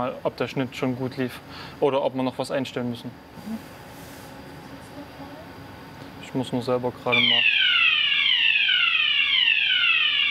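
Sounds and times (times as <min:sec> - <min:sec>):
speech: 0:00.0 - 0:03.9, 0:06.3 - 0:07.6
fire alarm sounding: 0:07.1 - 0:10.2.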